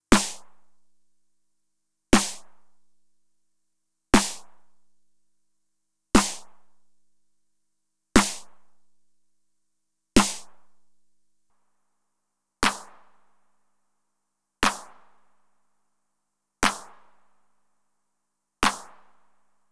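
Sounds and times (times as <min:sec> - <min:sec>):
RD-9 and TR-909 drum machine snare and clap: 0:00.1 - 0:00.6, 0:02.2 - 0:02.5, 0:04.2 - 0:04.5, 0:06.2 - 0:06.5, 0:08.2 - 0:08.6, 0:10.2 - 0:10.5, 0:16.6 - 0:16.9, 0:18.6 - 0:18.9.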